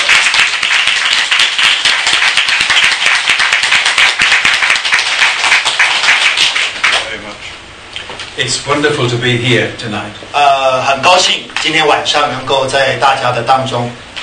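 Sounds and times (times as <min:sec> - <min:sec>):
audience applause welcoming a speaker: 0:00.0 - 0:07.2
speech: 0:08.6 - 0:14.0.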